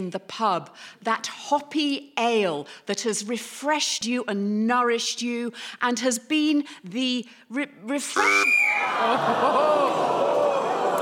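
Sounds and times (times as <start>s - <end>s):
speech: 0.0s - 10.5s
loud sharp whistle blast: 8.1s - 8.9s
laughter: 8.7s - 11.0s.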